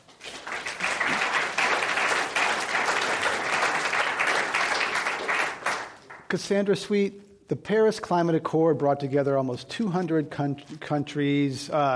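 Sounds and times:
audience applause at a climate discussion event: 0:00.0 - 0:06.2
speech: 0:06.3 - 0:11.9.

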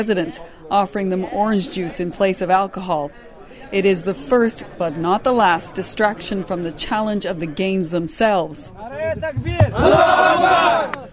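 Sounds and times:
speech: 0:00.0 - 0:11.1
team shouting a religious cheer: 0:09.6 - 0:11.1.

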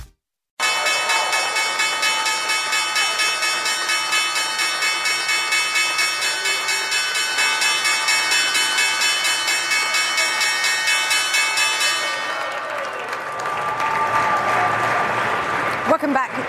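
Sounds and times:
applause and crowd noise: 0:00.6 - 0:03.9, 0:12.0 - 0:16.4
stock exchange electric opening bell: 0:00.6 - 0:12.6.

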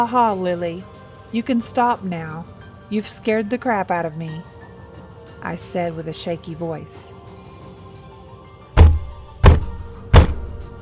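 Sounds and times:
speech: 0:00.0 - 0:04.5, 0:05.4 - 0:07.1
fists pounding on a bedroom door: 0:08.8 - 0:10.7.

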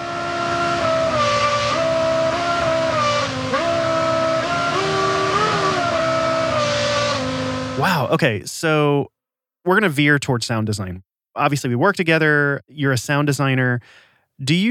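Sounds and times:
real car engine revving: 0:00.0 - 0:08.0
speech: 0:08.1 - 0:14.7.

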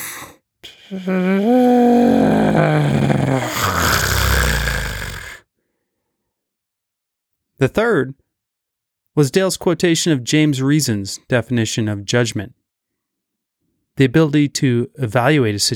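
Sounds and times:
speech: 0:00.9 - 0:03.1, 0:07.6 - 0:08.2, 0:09.2 - 0:12.6, 0:14.0 - 0:15.7
elephant seal snoring: 0:02.4 - 0:05.4.

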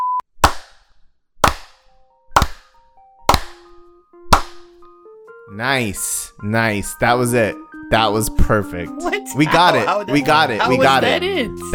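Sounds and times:
sharp hand claps: 0:01.4 - 0:01.8, 0:02.4 - 0:02.7, 0:03.3 - 0:03.6, 0:04.4 - 0:04.7
speech: 0:05.5 - 0:11.7.

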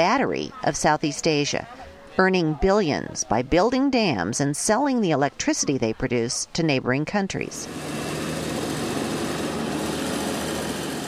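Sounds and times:
speech: 0:00.0 - 0:08.0
road grader diesel engine rumbling: 0:07.4 - 0:11.0.

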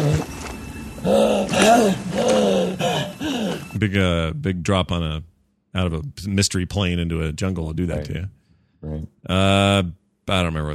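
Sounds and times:
harsh ragged breathing from a movie clip: 0:01.0 - 0:03.8
speech: 0:01.7 - 0:02.3, 0:03.8 - 0:10.7.

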